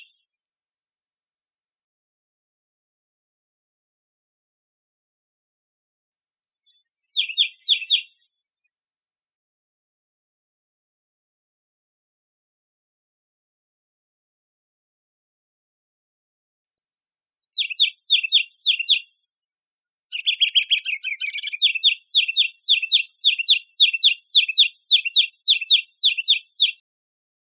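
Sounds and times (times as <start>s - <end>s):
Ruby-crowned kinglet calling: 6.6s - 8.7s, 16.9s - 26.8s.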